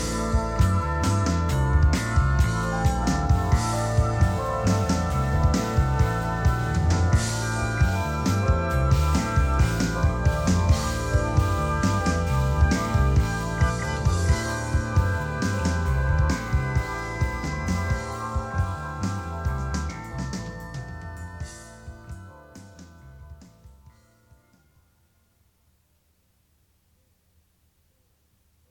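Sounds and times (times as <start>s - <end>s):
world music: 0.0s - 22.3s.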